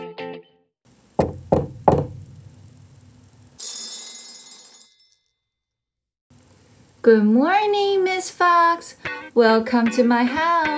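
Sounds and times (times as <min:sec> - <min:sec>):
knocking on a door: 0:01.2 - 0:02.4
speech: 0:07.0 - 0:10.7.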